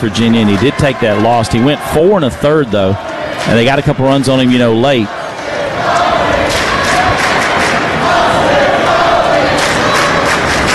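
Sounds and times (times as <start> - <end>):
speech: 0.0 - 5.2
baseball crowd cheering: 0.0 - 10.7.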